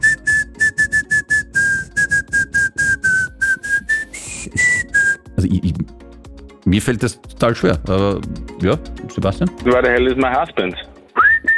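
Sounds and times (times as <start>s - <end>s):
person whistling a pop song melody: 0.0s - 5.3s, 11.2s - 11.5s
speech: 5.4s - 6.0s, 6.7s - 10.9s.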